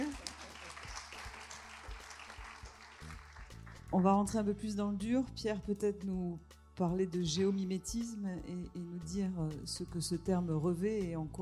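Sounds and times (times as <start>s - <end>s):
audience applause: 0.0s - 3.8s
speech: 3.9s - 11.4s.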